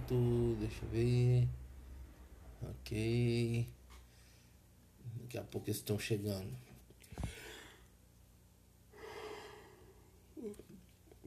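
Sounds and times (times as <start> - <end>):
speech: 0.1 - 1.6, 2.6 - 3.8, 5.0 - 7.4, 10.4 - 10.8
yawn: 10.4 - 10.8.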